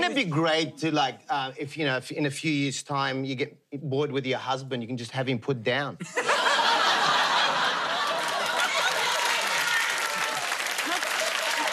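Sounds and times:
speech: 0:00.1 - 0:06.4
laughter: 0:06.0 - 0:11.7
live audience clapping: 0:07.5 - 0:11.7.

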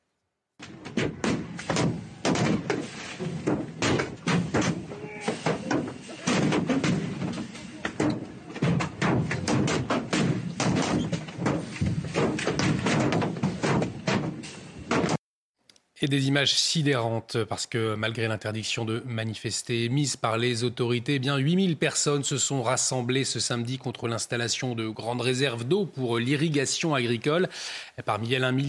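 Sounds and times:
projectiles hitting a gendarmerie truck: 0:00.6 - 0:15.2
speech: 0:16.0 - 0:28.6.

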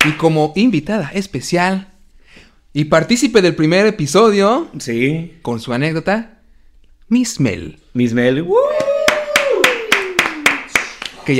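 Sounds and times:
people clapping: 0:00.0 - 0:00.2, 0:08.7 - 0:11.3
speech: 0:00.0 - 0:01.9, 0:02.8 - 0:06.4, 0:07.1 - 0:08.9.

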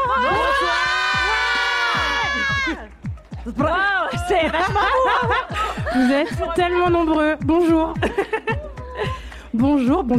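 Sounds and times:
live audience shouting and cheering: 0:00.0 - 0:03.0
laughter: 0:04.1 - 0:06.8, 0:08.0 - 0:09.3
speech: 0:06.0 - 0:08.3, 0:09.6 - 0:10.1.

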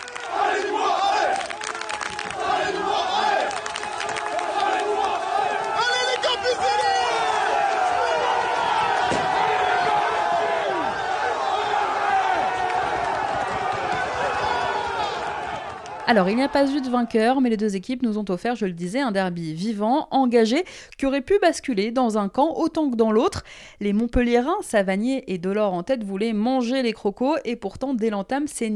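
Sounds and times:
Nîmes football supporters cheering and chanting in a stadium: 0:00.0 - 0:17.2
speech: 0:16.1 - 0:28.7.

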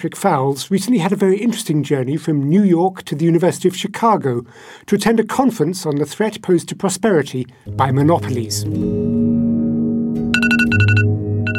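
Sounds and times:
speech: 0:00.0 - 0:09.2
alarm beeping on an Apple handset: 0:10.3 - 0:11.5.

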